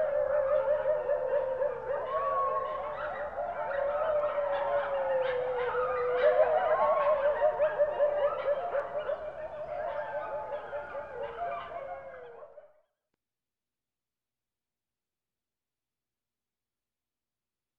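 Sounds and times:
coyote pack howling together: 0.0 - 12.7.

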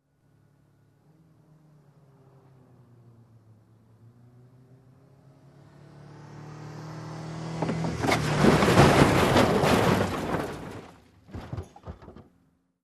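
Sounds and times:
car approaching: 0.0 - 9.1
car crash: 7.5 - 12.4.

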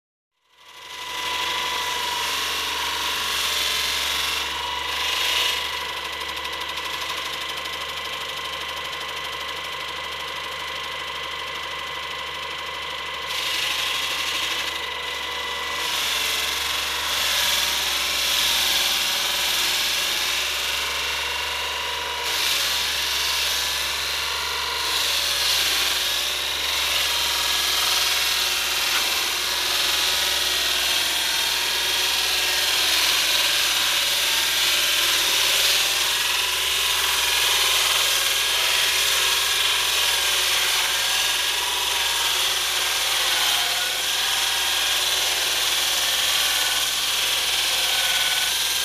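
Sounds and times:
construction noise: 0.5 - 48.8.

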